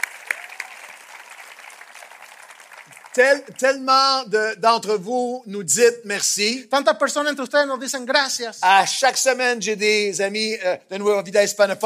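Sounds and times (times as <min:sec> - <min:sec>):
audience applauding: 0:00.0 - 0:03.8
speech: 0:03.2 - 0:11.8.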